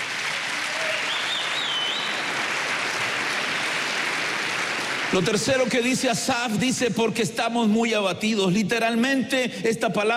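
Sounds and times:
audience applause: 0.0 - 6.0
speech: 5.1 - 10.1.

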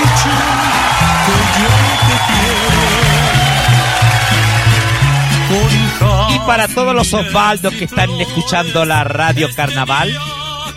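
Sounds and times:
applause: 0.0 - 6.3
speech: 1.3 - 2.4, 6.5 - 10.4.

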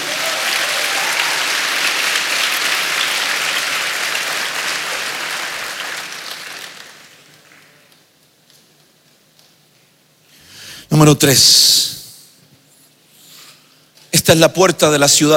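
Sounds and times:
audience clapping hands: 0.0 - 8.1
speech: 11.0 - 11.8, 14.3 - 15.3.

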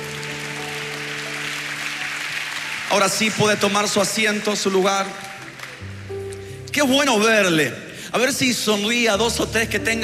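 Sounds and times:
audience applause: 0.0 - 6.2
speech: 2.9 - 5.3, 6.8 - 10.0.

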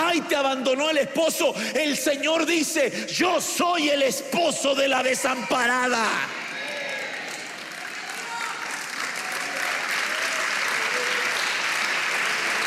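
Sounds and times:
speech: 0.2 - 6.5
audience clapping hands: 6.6 - 12.6.

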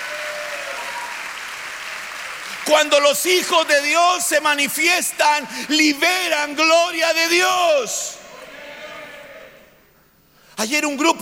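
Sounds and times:
audience clapping hands: 0.0 - 6.0
speech: 2.7 - 8.2, 10.6 - 11.2.

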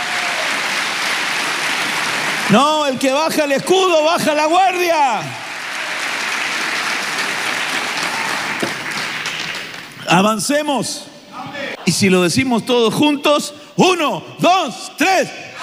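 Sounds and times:
audience applause: 0.0 - 3.0, 4.6 - 10.0
speech: 2.5 - 5.4, 10.1 - 11.1, 11.9 - 15.5.

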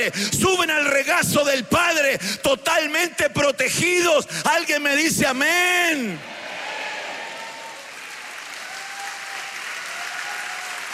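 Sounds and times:
speech: 0.0 - 6.4
audience clapping: 7.2 - 10.9.

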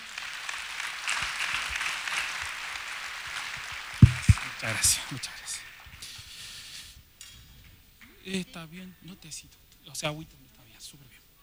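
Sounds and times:
audience applause: 0.0 - 5.7
sharp thump: 4.0 - 4.4
speech: 4.6 - 5.7, 8.2 - 11.2.

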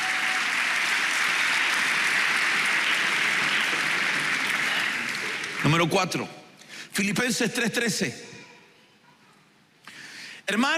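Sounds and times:
applause: 0.0 - 6.2
speech: 5.7 - 6.4, 7.0 - 8.3, 10.5 - 10.7.

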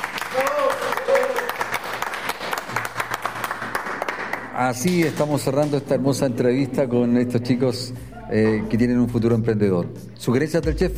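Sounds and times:
audience applause: 0.0 - 5.2
speech: 4.6 - 10.9.

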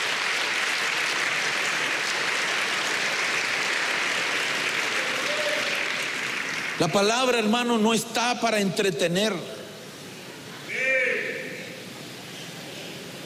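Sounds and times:
audience applause: 0.0 - 7.4
speech: 6.8 - 9.5.

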